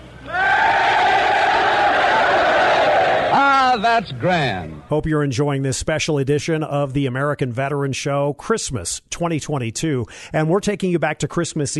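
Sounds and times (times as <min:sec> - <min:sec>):
crowd of soldiers shouting greetings in unison: 0:00.3 - 0:03.4
speech: 0:03.9 - 0:11.7.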